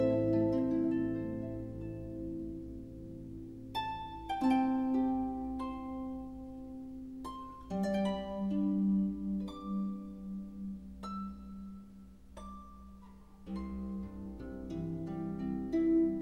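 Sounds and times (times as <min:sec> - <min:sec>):
instrumental harp praise music: 0:00.0 - 0:16.2.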